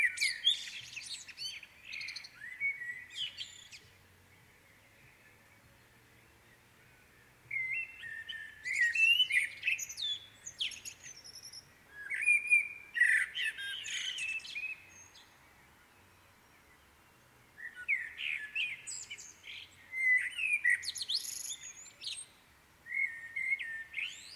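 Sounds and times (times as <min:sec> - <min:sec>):
birds singing in the morning: 0:00.0 - 0:24.3.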